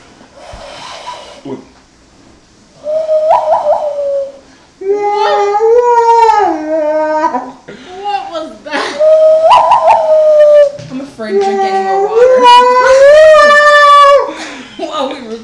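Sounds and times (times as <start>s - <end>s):
speech: 1.4s - 1.8s
person vocally imitating howl-like western film theme: 2.8s - 7.5s, 9.0s - 10.8s, 11.4s - 14.3s.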